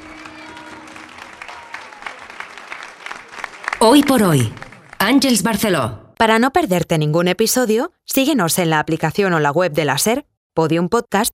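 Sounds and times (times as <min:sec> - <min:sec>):
audience applause: 0:00.0 - 0:05.5
speech: 0:03.8 - 0:11.3.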